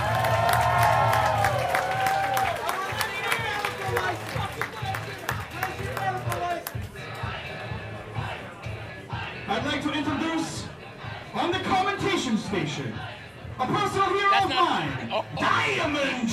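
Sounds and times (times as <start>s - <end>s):
crowd applause: 0.0s - 7.4s
crowd shouting and cheering: 0.0s - 16.3s.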